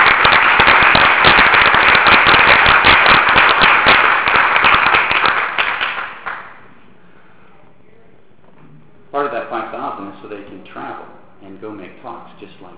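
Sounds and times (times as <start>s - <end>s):
crowd applauding: 0.0s - 6.6s
speech: 10.6s - 12.7s.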